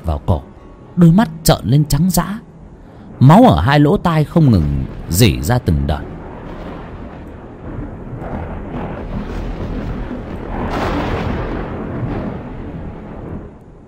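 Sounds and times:
speech: 0.1 - 2.5, 3.2 - 6.1
thunder: 4.3 - 13.8.

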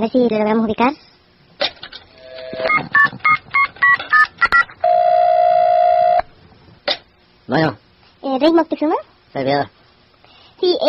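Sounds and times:
speech: 0.0 - 1.1, 7.5 - 9.8, 10.6 - 10.8
long steady telephone tone: 2.2 - 6.3
touch-tone beeps of a telephone number being dialed: 2.6 - 5.5.

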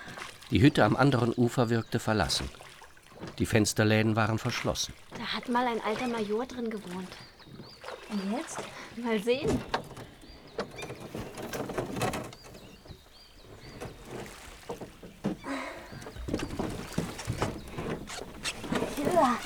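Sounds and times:
light splashing of lake water: 0.0 - 19.4
rowboat bumping and scraping onto the shore of a small lake: 0.0 - 19.4
speech: 0.5 - 2.6, 3.3 - 7.3, 8.1 - 9.8
rowboat hollow wooden knocks: 9.4 - 19.4.

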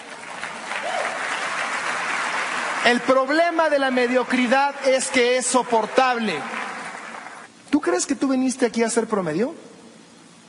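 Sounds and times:
audience applause at a talk on the subconscious mind: 0.0 - 7.5
speech: 2.8 - 6.6, 7.8 - 9.7.

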